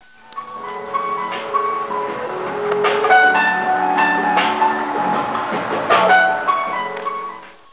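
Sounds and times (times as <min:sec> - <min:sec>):
jazz music: 0:00.0 - 0:07.7.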